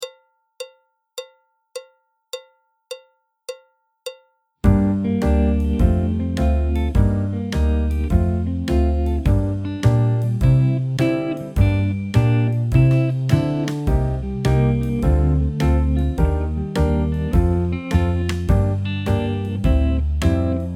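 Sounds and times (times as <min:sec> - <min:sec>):
jazz backing track: 0:04.6 - 0:20.7.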